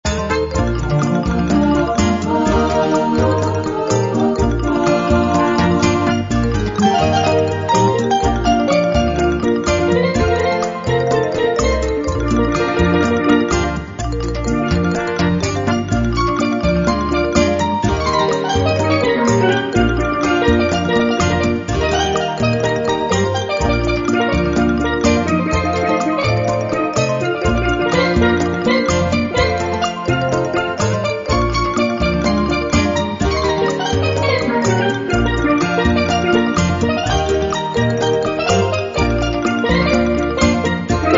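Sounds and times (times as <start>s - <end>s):
calypso harmony: 0.0s - 41.1s.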